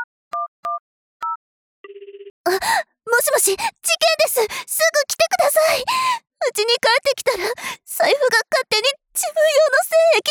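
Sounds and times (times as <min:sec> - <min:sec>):
dual-tone phone keypad beeps: 0:00.0 - 0:02.0
steady pulsing phone ringing tone: 0:00.4 - 0:02.4
speech: 0:02.5 - 0:10.2.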